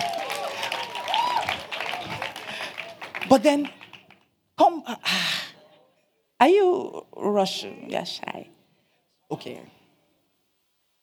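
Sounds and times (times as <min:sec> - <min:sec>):
scattered cheers and raised voices: 0:00.0 - 0:03.1
audience clapping: 0:00.0 - 0:04.3
speech: 0:03.3 - 0:03.8, 0:04.7 - 0:05.4, 0:06.4 - 0:08.6, 0:09.3 - 0:09.8.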